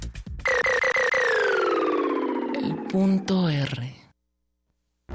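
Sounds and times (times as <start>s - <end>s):
electronic music with pounding beats over deep bass: 0.5s - 3.1s
loud siren-like synth tones gliding downward: 0.5s - 3.5s
speech: 2.9s - 4.0s.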